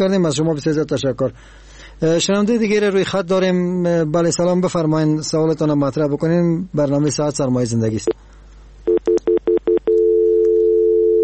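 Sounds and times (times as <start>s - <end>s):
speech: 0.0s - 8.3s
short telephone line beeps after a radio call-in caller's connection drops: 8.9s - 11.2s.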